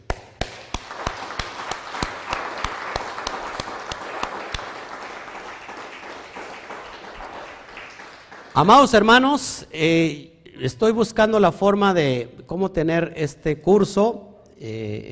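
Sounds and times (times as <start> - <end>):
applause: 0.0 - 9.4
speech: 8.6 - 15.1.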